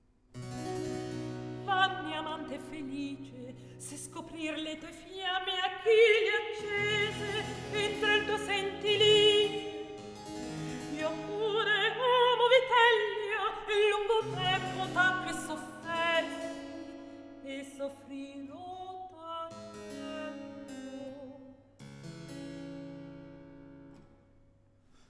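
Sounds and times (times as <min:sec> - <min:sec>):
recitative singing: 0:01.6 - 0:20.5.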